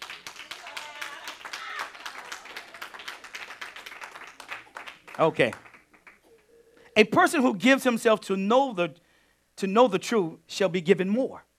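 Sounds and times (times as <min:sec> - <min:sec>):
soft clapping: 0:00.0 - 0:06.3
speech: 0:05.2 - 0:05.7, 0:07.0 - 0:09.0, 0:09.6 - 0:11.5.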